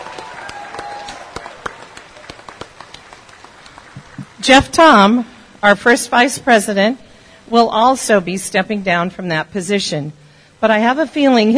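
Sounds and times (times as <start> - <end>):
small group clapping: 0.0 - 4.4
speech: 4.4 - 11.5.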